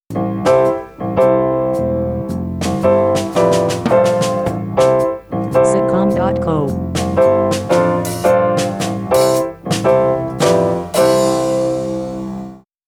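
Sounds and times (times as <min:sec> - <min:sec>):
blues music: 0:00.1 - 0:12.5.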